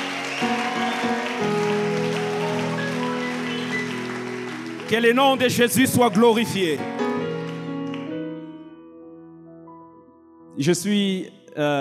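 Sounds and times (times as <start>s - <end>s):
church congregation acclaiming: 0.0s - 7.9s
church congregation clapping during worship: 0.0s - 8.1s
speech: 4.9s - 6.9s, 10.6s - 11.7s.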